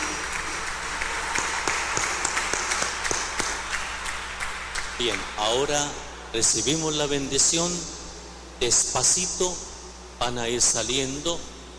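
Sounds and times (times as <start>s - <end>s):
congratulatory applause: 0.0s - 5.4s
speech: 5.0s - 8.0s, 8.6s - 11.7s.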